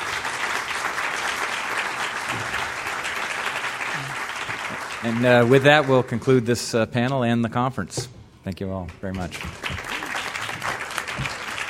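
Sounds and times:
audience applause: 0.0s - 6.5s, 9.1s - 11.6s
speech: 5.0s - 9.8s.

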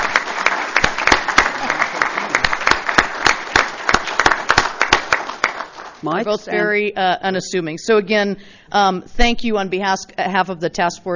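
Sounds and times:
audience applause at a county event honoring task force members: 0.0s - 6.0s
speech: 6.0s - 11.1s.

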